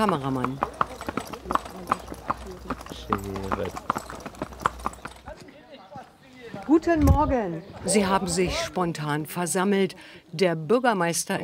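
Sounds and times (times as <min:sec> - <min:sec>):
speech: 0:00.0 - 0:00.8, 0:03.0 - 0:04.0, 0:06.7 - 0:11.4
horse team's hooves clip-clopping: 0:00.0 - 0:07.0.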